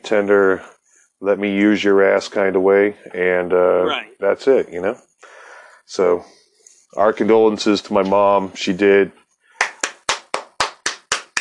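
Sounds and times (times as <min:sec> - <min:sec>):
speech: 0:00.1 - 0:05.1, 0:05.9 - 0:09.2
small round of applause: 0:09.6 - 0:11.3.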